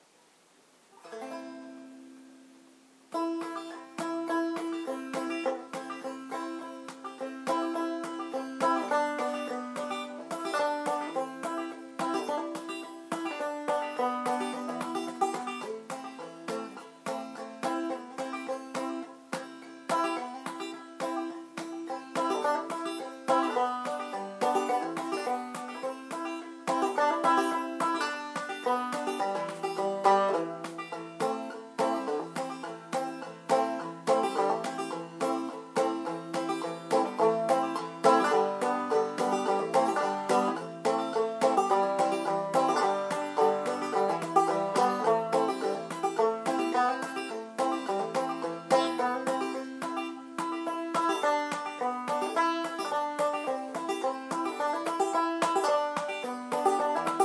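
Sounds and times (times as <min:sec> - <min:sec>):
banjo tune: 0:00.8 - 0:57.2.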